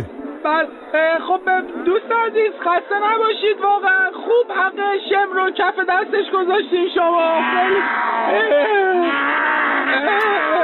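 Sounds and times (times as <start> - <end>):
speech: 0.0 - 10.6
person in a lion costume imitating a lion's roar: 7.4 - 10.6.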